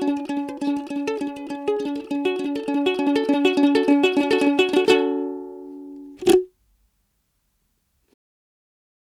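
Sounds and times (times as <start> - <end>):
guitar: 0.0 - 6.5.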